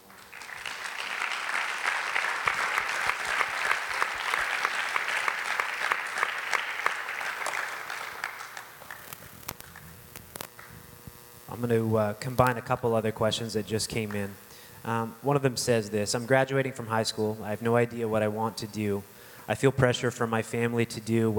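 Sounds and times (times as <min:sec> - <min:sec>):
crowd applauding: 0:00.0 - 0:09.9
speech: 0:11.6 - 0:21.3.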